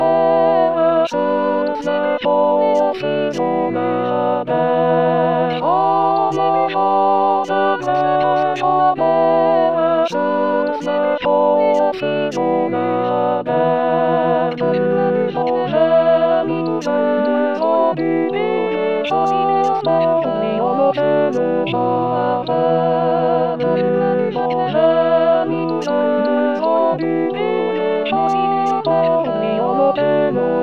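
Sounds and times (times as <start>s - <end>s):
adult choir singing the alto part: 0.0s - 30.5s.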